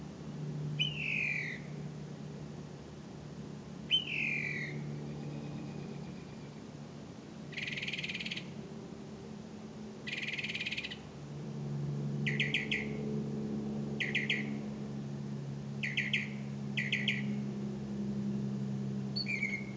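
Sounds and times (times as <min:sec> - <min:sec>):
low steady hum: 0:00.0 - 0:19.7
bird calling: 0:00.8 - 0:01.7, 0:03.9 - 0:06.6, 0:07.5 - 0:08.5, 0:10.0 - 0:11.1, 0:12.2 - 0:13.0, 0:14.0 - 0:14.6, 0:15.8 - 0:17.4, 0:19.2 - 0:19.7.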